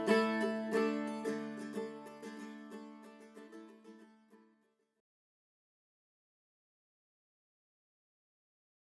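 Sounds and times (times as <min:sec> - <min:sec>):
zebrawood mandola playing: 0:00.0 - 0:02.9.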